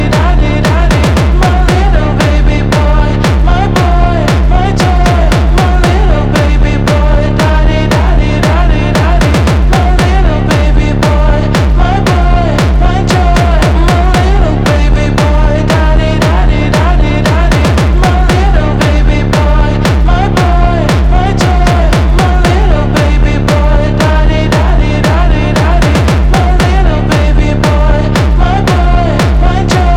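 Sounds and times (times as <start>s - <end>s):
slowed hardstyle music: 0.0s - 29.9s.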